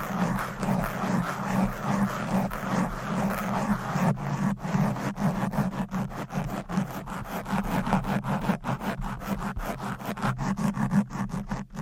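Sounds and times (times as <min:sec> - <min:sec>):
fast aggressive scratching on a microphone: 0:00.0 - 0:11.8.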